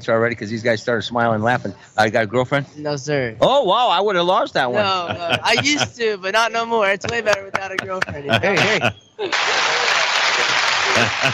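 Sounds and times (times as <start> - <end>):
speech: 0.0 - 9.8, 11.0 - 11.3
laughter: 4.8 - 6.0, 7.0 - 11.3
audience applause: 8.5 - 11.3.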